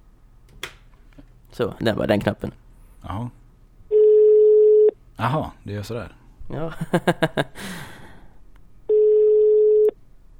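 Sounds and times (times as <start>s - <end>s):
speech: 1.6s - 3.4s, 5.2s - 7.9s
ringback tone of an outgoing phone call: 3.9s - 4.9s, 8.9s - 10.0s
laughter: 6.7s - 7.6s
breathy sigh: 7.6s - 8.4s.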